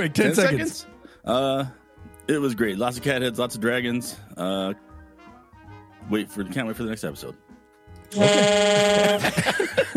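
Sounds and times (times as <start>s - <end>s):
speech: 0.0s - 4.9s, 6.0s - 7.5s, 8.1s - 9.9s
loud harsh game show buzzer: 8.1s - 9.4s
laughter: 8.2s - 9.9s.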